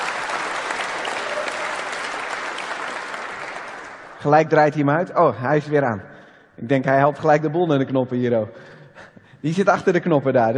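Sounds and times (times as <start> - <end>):
crowd applauding: 0.0 - 4.3
speech: 4.2 - 8.6, 9.4 - 10.5.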